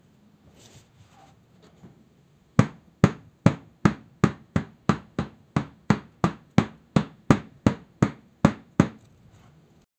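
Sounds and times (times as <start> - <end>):
rubber exercise equipment: 2.6 - 9.0.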